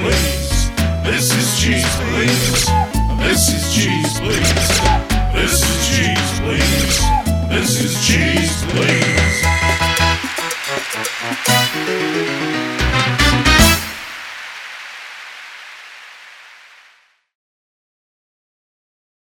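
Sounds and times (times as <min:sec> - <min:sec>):
salsa music: 0:00.0 - 0:14.3.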